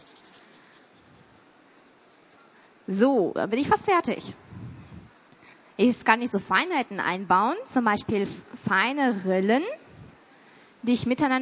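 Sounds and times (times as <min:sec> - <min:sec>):
thick black Edding marker colouring in: 0:00.0 - 0:02.8
speech: 0:02.9 - 0:04.4, 0:05.8 - 0:09.8, 0:10.8 - 0:11.4.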